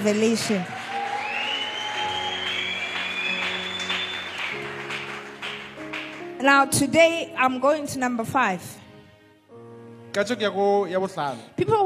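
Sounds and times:
speech: 0.0 - 0.8, 6.4 - 8.8, 10.1 - 11.8
audience clapping hands in applause: 0.0 - 6.4.

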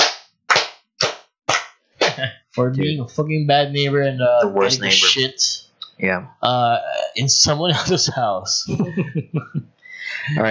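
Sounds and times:
slow hand claps: 0.0 - 2.3
laughter: 2.0 - 5.6, 6.4 - 10.4
speech: 2.2 - 10.4.

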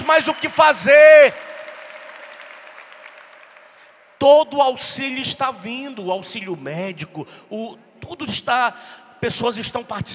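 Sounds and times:
audience applause: 0.0 - 3.9
speech: 0.1 - 1.5, 4.2 - 10.1.

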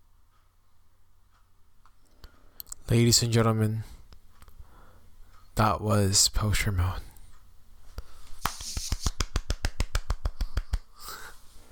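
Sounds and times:
speech: 2.9 - 4.0, 5.6 - 7.1
hand clap: 8.4 - 11.2.

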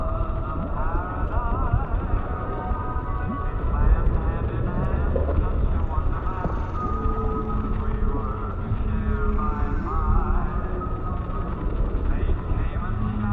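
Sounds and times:
oldies music playing underwater: 0.0 - 13.3.

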